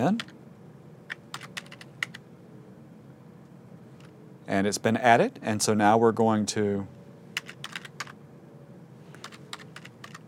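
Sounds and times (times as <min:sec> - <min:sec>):
speech: 0:00.0 - 0:00.3, 0:04.5 - 0:07.0
computer keyboard typing: 0:00.1 - 0:00.4, 0:01.1 - 0:02.2, 0:07.4 - 0:08.2, 0:09.2 - 0:10.2.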